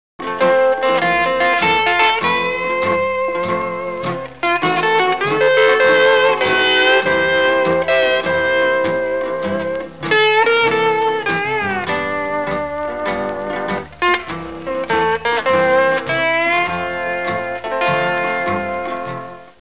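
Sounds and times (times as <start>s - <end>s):
instrumental music: 0.2s - 19.5s.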